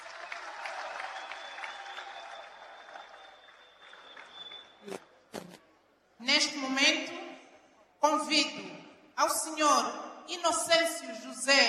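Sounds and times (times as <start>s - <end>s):
audience applause: 0.0s - 4.8s
speech: 4.8s - 5.1s, 6.2s - 7.2s, 8.1s - 11.6s.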